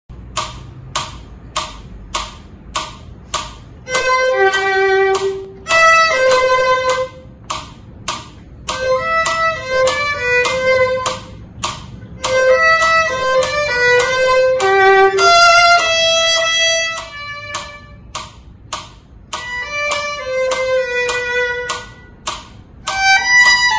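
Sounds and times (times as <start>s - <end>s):
violin: 3.8s - 7.4s, 8.6s - 18.2s, 19.3s - 23.7s.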